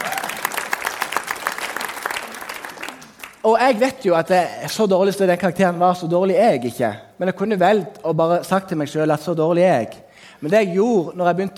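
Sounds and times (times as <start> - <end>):
audience applause: 0.0 - 3.4
speech: 3.4 - 11.5.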